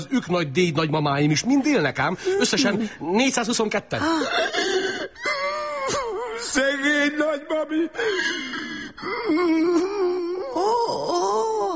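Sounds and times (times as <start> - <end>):
speech: 0.0 - 5.0
man crying in wavering wails: 3.9 - 11.7.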